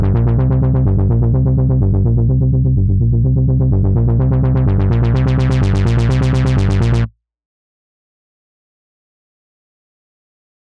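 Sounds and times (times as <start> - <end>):
basses: 0.0 - 7.1.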